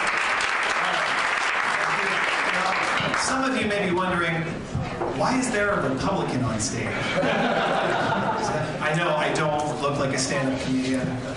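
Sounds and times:
crowd applauding: 0.0 - 3.6
speech: 3.4 - 11.3
laughter: 6.9 - 8.9, 11.1 - 11.3.

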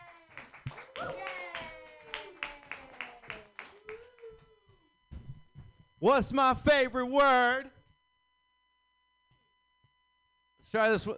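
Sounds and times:
audience clapping: 0.0 - 4.5
speech: 6.0 - 7.8, 10.7 - 11.1.

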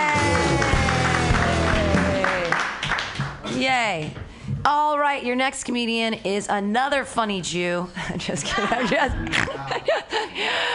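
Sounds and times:
crowd cheering and whooping: 0.0 - 2.6
crowd applause: 0.0 - 3.4
speech: 3.9 - 10.7
laughter: 8.0 - 10.6.

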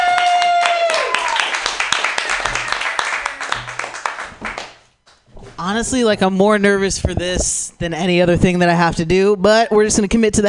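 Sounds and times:
audience clapping and cheering: 0.0 - 4.9
speech: 5.6 - 10.4.

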